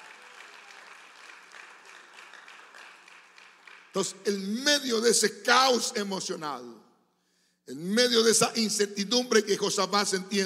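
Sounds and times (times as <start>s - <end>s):
audience applause: 0.0s - 4.0s
speech: 3.9s - 6.8s, 7.7s - 10.4s.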